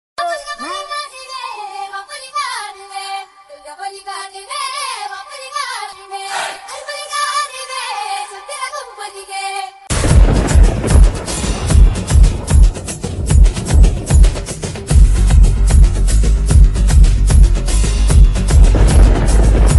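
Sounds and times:
climax chase background music: 10.0 - 19.7.

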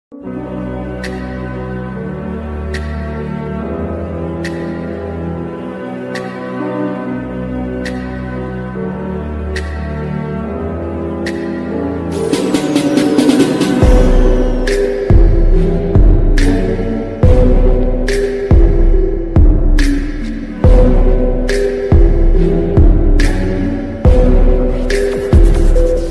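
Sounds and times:
attitude ringtone background music: 11.6 - 26.0.

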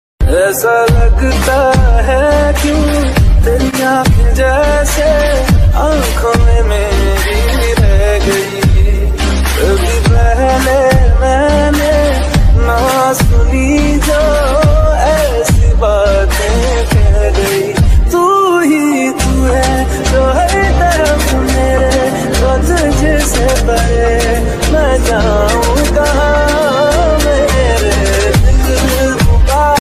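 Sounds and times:
sad song ringtone: 0.2 - 29.7.

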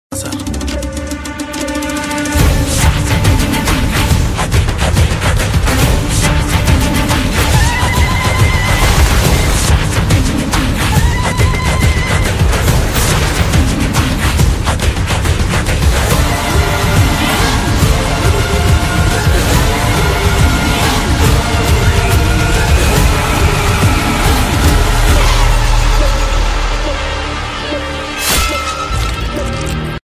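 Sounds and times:
Tamil trailer background music ringtone: 0.1 - 30.0.

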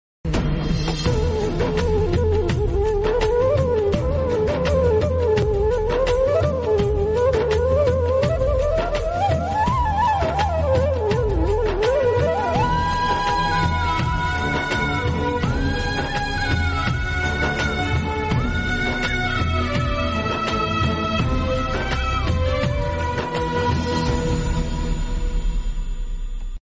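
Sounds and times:
sad flute background music ringtone: 0.9 - 26.6.

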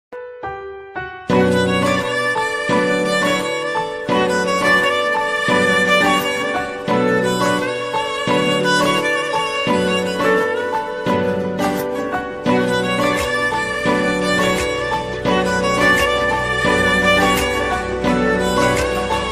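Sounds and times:
emotional instrumental background music ringtone: 0.1 - 19.3.

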